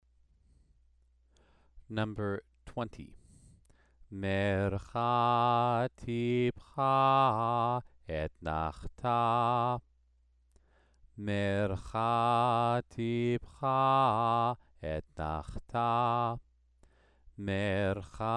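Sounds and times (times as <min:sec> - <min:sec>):
Torah trope cantillation exercise: 0:04.1 - 0:09.8, 0:11.2 - 0:16.4, 0:17.4 - 0:18.3.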